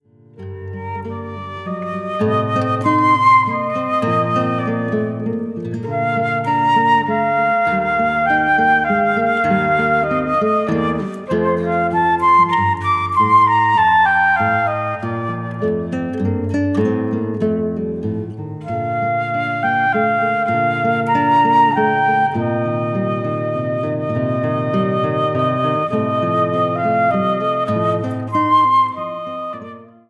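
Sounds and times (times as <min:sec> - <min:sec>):
siciliano piece: 0:00.4 - 0:30.0.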